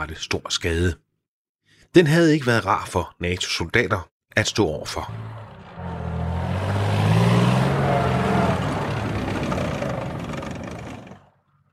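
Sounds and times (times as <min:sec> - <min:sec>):
speech: 0:00.0 - 0:01.0, 0:01.9 - 0:05.4
BMP-1 infantry fighting vehicle engine revving: 0:05.0 - 0:11.3.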